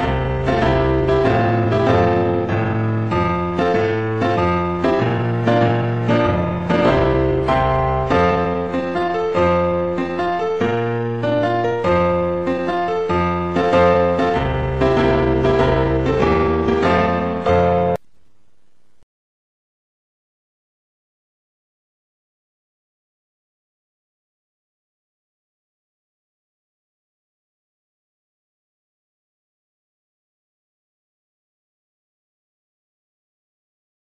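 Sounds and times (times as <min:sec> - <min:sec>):
background music: 0:00.0 - 0:18.1.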